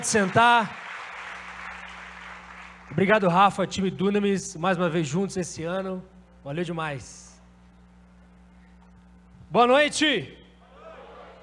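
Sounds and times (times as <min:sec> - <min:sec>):
speech: 0:00.0 - 0:00.8, 0:02.9 - 0:07.3, 0:09.5 - 0:10.4
audience applause: 0:00.0 - 0:03.0.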